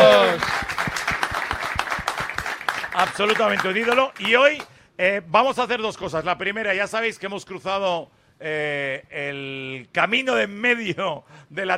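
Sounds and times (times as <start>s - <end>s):
studio audience clapping: 0.0s - 4.8s
speech: 3.1s - 11.7s.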